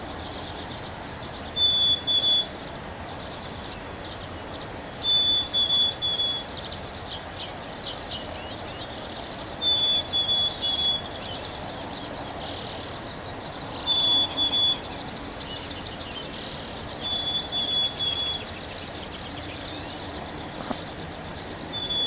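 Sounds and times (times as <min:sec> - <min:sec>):
bird whistling: 0:01.6 - 0:02.5, 0:05.0 - 0:06.6, 0:09.6 - 0:11.1, 0:13.8 - 0:18.9, 0:21.7 - 0:22.0.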